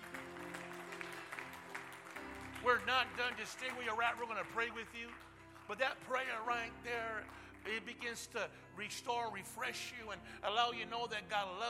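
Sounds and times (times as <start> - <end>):
audience clapping: 0.0 - 8.4
speech: 2.6 - 11.6.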